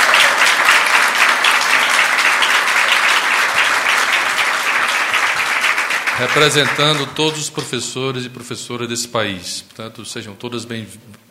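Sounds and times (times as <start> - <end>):
Brazilian audience applause for teachers: 0.0 - 7.7
speech: 6.2 - 11.2.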